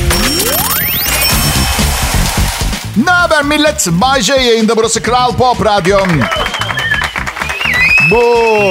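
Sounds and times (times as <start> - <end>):
digital applause sound effect: 0.2 - 3.7, 5.5 - 8.7
speech: 3.4 - 6.7, 8.1 - 8.7.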